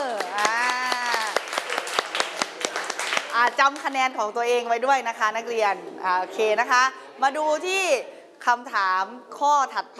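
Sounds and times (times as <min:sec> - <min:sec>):
scattered hand claps from students in a classroom: 0:00.0 - 0:04.1
speech: 0:03.4 - 0:09.9.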